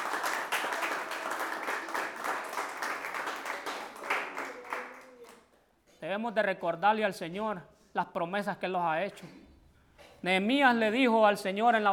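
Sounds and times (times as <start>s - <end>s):
audience applause: 0.0s - 5.4s
speech: 6.1s - 9.4s, 10.2s - 11.9s.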